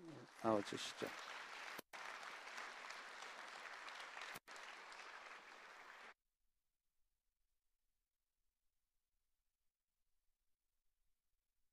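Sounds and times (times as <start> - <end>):
audience applauding to welcome the pastor: 0.0 - 6.2
speech: 0.4 - 1.3.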